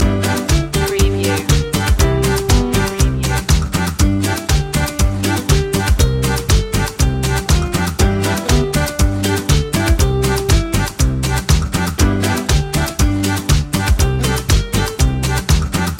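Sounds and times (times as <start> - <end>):
instrumental music loop without vocals: 0.0 - 15.9.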